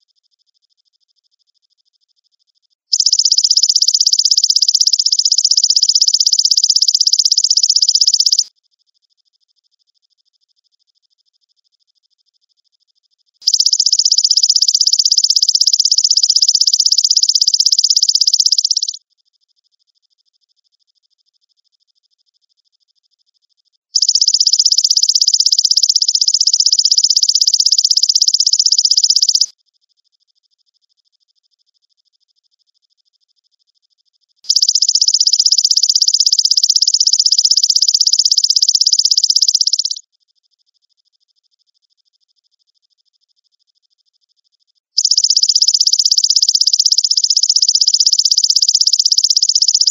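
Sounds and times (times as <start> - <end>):
grasshopper call, high rasping trill: 2.9 - 8.5, 13.4 - 19.0, 24.0 - 29.5, 34.5 - 40.0, 45.0 - 49.9.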